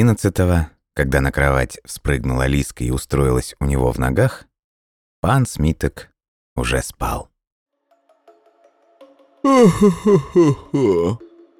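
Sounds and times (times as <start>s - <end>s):
speech: 0.0s - 4.5s, 5.2s - 7.3s, 9.4s - 11.2s
man yawning: 9.5s - 11.2s.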